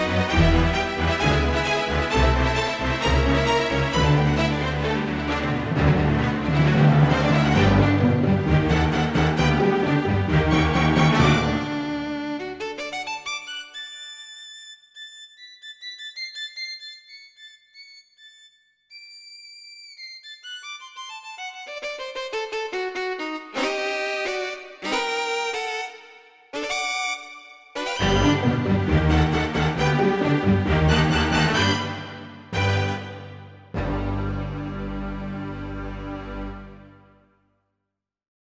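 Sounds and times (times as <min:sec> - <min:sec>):
classical orchestral tune on a synthesizer: 0:00.0 - 0:13.6, 0:21.6 - 0:37.2.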